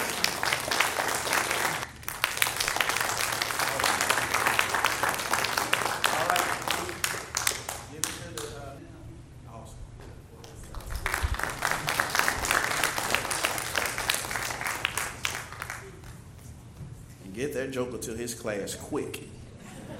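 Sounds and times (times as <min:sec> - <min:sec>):
applause for people coming up: 0:00.0 - 0:08.5, 0:10.4 - 0:16.3
speech: 0:17.7 - 0:19.4.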